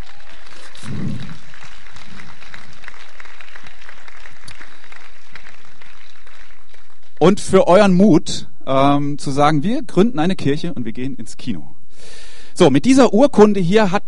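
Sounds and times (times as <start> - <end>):
audience applause: 0.0 - 7.4
speech: 7.2 - 14.0.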